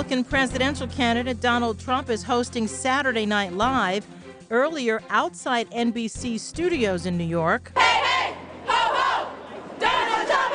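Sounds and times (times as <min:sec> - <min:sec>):
speech: 0:00.0 - 0:08.0
crowd of protesters shouting: 0:07.8 - 0:10.5.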